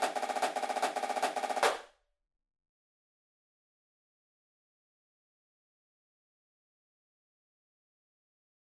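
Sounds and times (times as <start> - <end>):
snare drum: 0.0 - 1.9.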